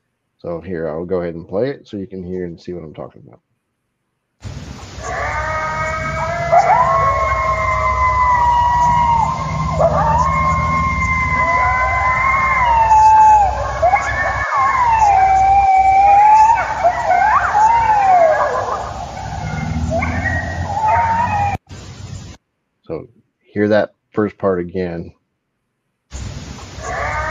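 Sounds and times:
speech: 0.4 - 3.5, 23.6 - 25.2
coyotes howling and yipping: 4.7 - 21.6, 26.6 - 27.2.

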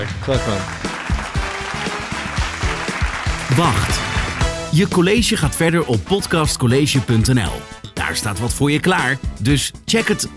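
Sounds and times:
applause: 0.0 - 4.7
speech: 0.2 - 0.8, 3.6 - 4.1, 4.7 - 10.3.

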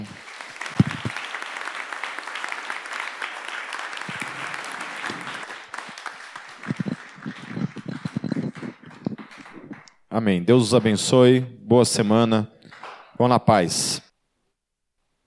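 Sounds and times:
audience applauding: 0.0 - 10.0, 12.7 - 13.1
speech: 10.2 - 12.6, 13.2 - 14.0.

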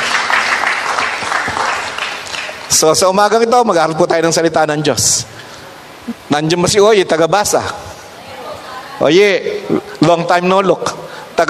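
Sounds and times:
audience clapping: 0.0 - 2.8
speech: 2.7 - 5.4, 6.1 - 7.9, 9.0 - 11.4.

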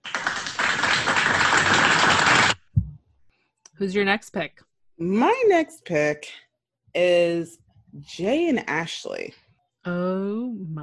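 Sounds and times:
applause: 0.0 - 2.7
speech: 3.8 - 10.8.

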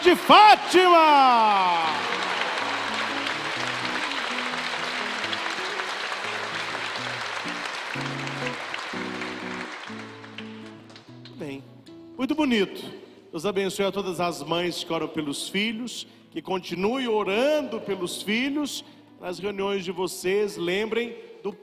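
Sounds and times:
crowd clapping: 0.0 - 11.4
speech: 0.1 - 2.1, 12.2 - 21.6.

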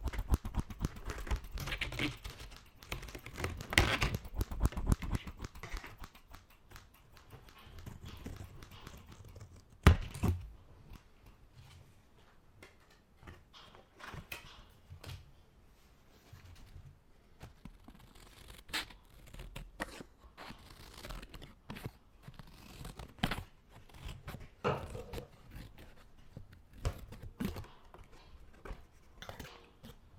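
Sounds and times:
scissors cutting paper and plastic: 0.0 - 10.4, 17.7 - 28.1.

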